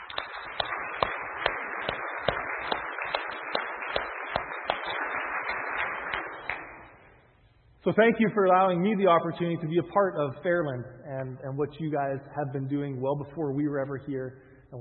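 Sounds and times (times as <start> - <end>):
round of applause: 0.0 - 7.1
speech: 7.8 - 14.8.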